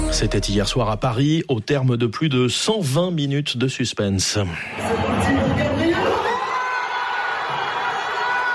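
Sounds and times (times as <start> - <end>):
speech: 0.2 - 5.7
football stadium crowd roaring and cheering: 4.7 - 8.5
shouts and whoops: 4.8 - 8.5.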